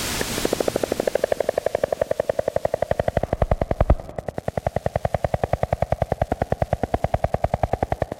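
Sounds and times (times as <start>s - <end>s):
Columbia spotted frogs calling underwater: 0.2s - 8.1s.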